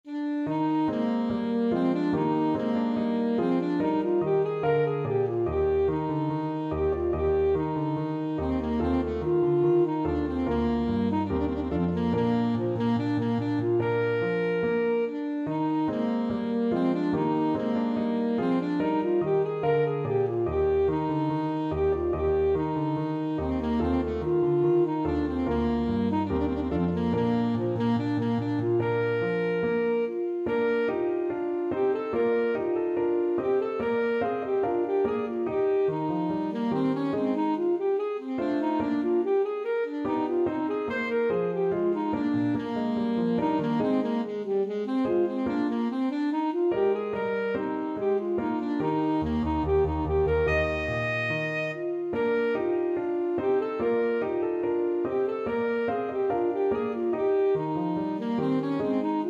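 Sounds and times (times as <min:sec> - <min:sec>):
alto saxophone march in D: 0:00.0 - 0:59.2.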